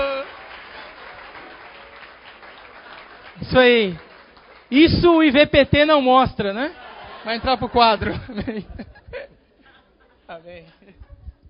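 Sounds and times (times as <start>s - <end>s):
applause for a speaker: 0.0s - 5.4s
speech: 3.4s - 4.1s, 4.7s - 9.0s, 10.3s - 11.1s
laughter: 6.6s - 10.2s.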